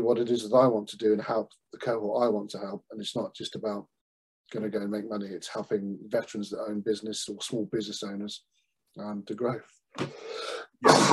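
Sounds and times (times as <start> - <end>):
speech: 0.0 - 3.9, 4.5 - 11.1
person sneezing: 10.0 - 11.1.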